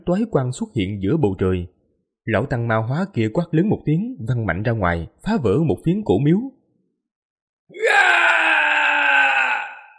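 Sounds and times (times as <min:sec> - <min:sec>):
speech: 0:00.0 - 0:06.6
long mournful wailing scream: 0:07.7 - 0:09.9.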